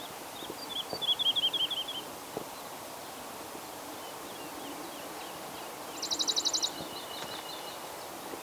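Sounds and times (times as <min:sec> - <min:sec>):
woodlark and cirl bunting singing: 0:00.0 - 0:02.1, 0:04.0 - 0:08.2.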